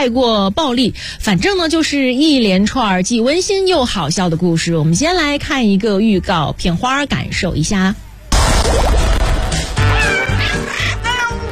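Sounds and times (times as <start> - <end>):
speech: 0.0 - 8.0, 8.6 - 9.2
cat meowing: 9.8 - 11.4.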